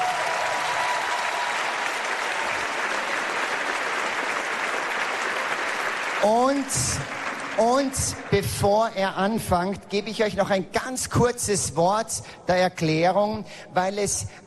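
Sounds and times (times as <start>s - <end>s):
audience applause: 0.0s - 9.2s
speech: 6.2s - 14.4s.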